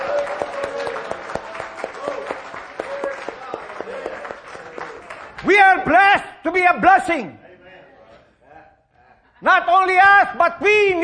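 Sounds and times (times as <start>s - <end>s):
audience clapping: 0.0s - 5.6s
speech: 5.4s - 7.4s, 9.4s - 11.0s.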